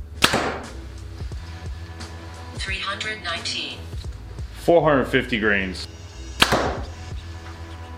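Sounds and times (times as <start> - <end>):
arrow impact: 0.2 - 0.8, 6.4 - 7.0
compound bow shooting an arrow: 0.2 - 0.8, 6.4 - 7.0
speech: 2.6 - 4.0, 4.7 - 6.0.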